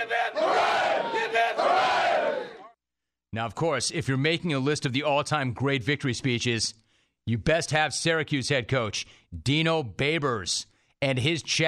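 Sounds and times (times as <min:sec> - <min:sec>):
NFL team shouting hip hip hooray in unison after a win: 0:00.0 - 0:02.7
speech: 0:03.3 - 0:11.6.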